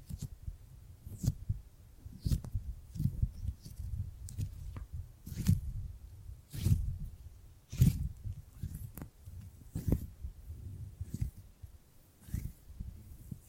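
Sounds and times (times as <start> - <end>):
gripping and grabbing sounds: 2.1 - 5.8, 6.5 - 7.1, 7.7 - 10.2, 10.9 - 11.5, 12.2 - 13.4.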